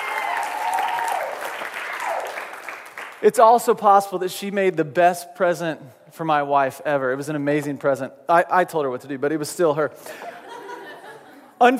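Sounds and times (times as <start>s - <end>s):
audience applause: 0.0s - 3.2s
speech: 3.2s - 10.4s, 11.6s - 11.7s
laughter: 10.0s - 11.7s.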